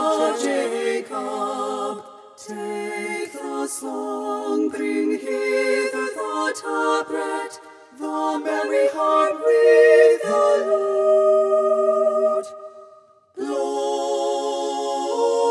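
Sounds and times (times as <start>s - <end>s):
choir singing: 0.0s - 15.5s.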